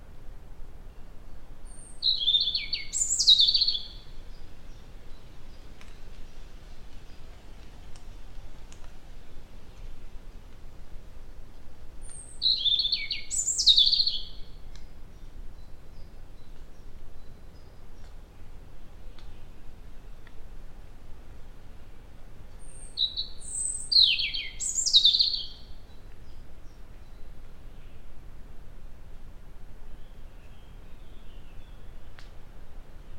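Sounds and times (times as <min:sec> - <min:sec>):
European robin Erithacus rubecula singing high thin warbling phrases: 0:00.9 - 0:06.0, 0:12.0 - 0:20.4, 0:22.5 - 0:28.1.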